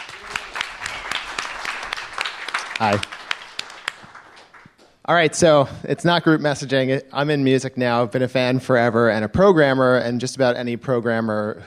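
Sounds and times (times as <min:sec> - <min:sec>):
audience applause: 0:00.0 - 0:05.0
speech: 0:02.8 - 0:03.2, 0:05.1 - 0:11.6.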